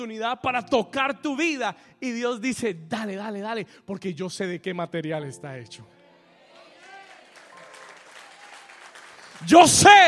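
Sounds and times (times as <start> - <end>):
speech: 0.0 - 6.0, 9.4 - 10.0
audience applauding: 6.5 - 10.0.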